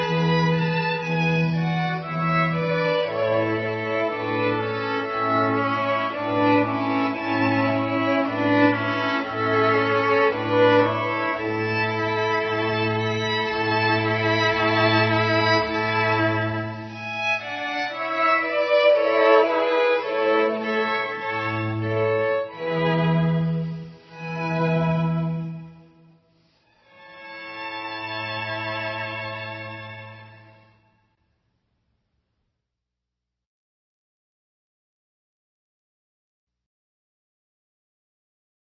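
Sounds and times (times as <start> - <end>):
string quartet: 0.0 - 26.2, 26.8 - 30.8.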